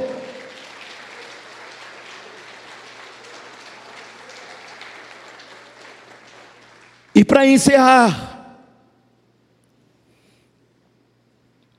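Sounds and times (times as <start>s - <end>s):
audience applauding: 0.0s - 7.6s
speech: 7.2s - 8.3s.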